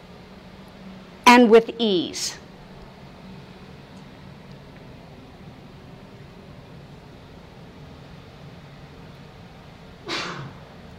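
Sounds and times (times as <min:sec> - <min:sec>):
speech: 0:01.4 - 0:02.4
sneeze: 0:10.0 - 0:10.7.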